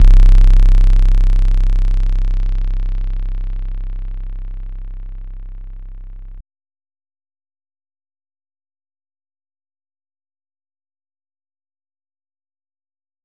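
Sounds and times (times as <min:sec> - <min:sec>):
bass: 0:00.0 - 0:06.4.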